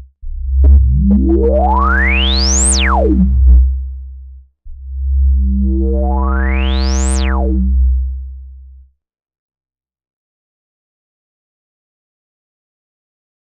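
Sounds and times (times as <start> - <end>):
filter effect: 0.3 - 3.9, 5.0 - 8.2.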